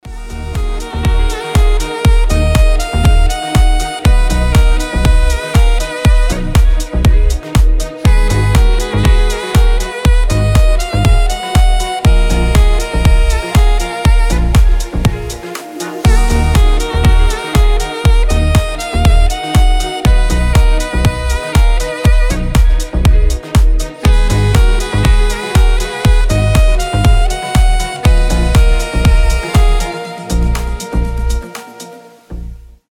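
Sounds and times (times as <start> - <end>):
saxophone melody: 0.0 - 32.8.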